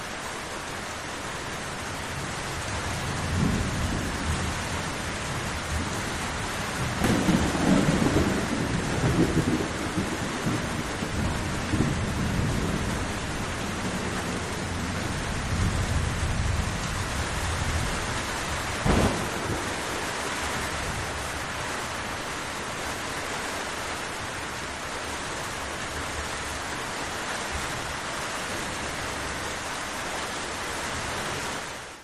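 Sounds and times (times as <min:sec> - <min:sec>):
light medium rain: 0:00.0 - 0:32.0
distant thunder: 0:06.8 - 0:16.7, 0:18.7 - 0:21.6.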